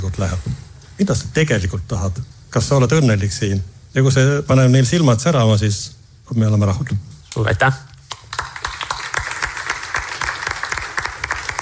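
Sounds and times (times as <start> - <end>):
speech: 0.0 - 7.8
audience applause: 8.1 - 11.5.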